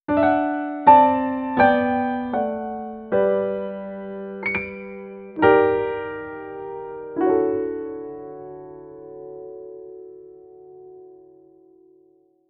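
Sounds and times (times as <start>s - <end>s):
piano: 0.0s - 12.4s.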